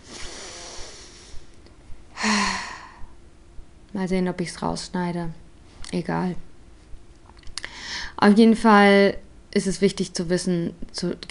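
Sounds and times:
quiet breathing: 0.0 - 3.2, 7.6 - 8.2
nervous man taking a deep sighing breath: 2.2 - 3.1
speech: 3.9 - 6.5, 8.2 - 11.2.

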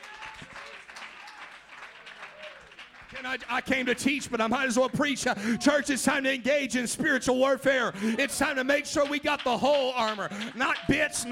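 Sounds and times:
audience clapping hands: 0.0 - 5.6, 8.2 - 11.2
speech: 3.1 - 11.2.

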